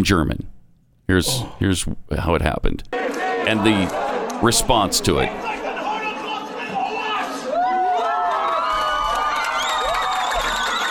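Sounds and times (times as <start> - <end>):
speech: 0.0 - 5.5
crowd cheering: 3.0 - 10.8.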